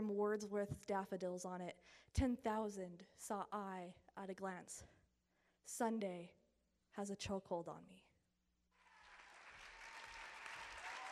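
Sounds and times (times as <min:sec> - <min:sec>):
speech: 0:00.0 - 0:05.0, 0:05.6 - 0:06.4, 0:07.0 - 0:08.1
audience applause: 0:08.8 - 0:11.0.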